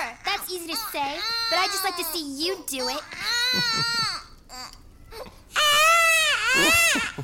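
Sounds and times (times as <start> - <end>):
baby crying: 0.0 - 7.2
speech: 0.5 - 4.2, 6.6 - 7.2.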